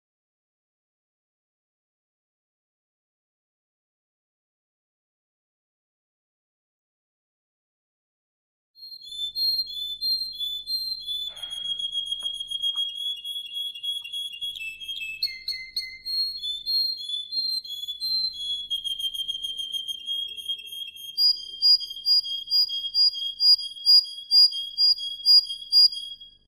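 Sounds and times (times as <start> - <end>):
Atlantic canary singing with rolling trills and whistled notes: 8.8 - 26.4.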